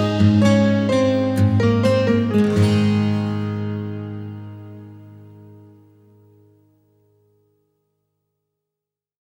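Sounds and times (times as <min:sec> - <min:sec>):
folk corporate music: 0:00.0 - 0:06.2.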